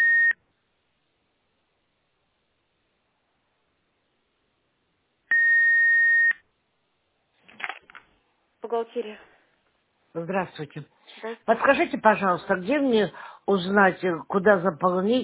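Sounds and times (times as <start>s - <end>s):
telephone line beeps: 0.0s - 0.4s, 5.3s - 6.4s
speech: 8.7s - 9.3s, 10.1s - 15.2s.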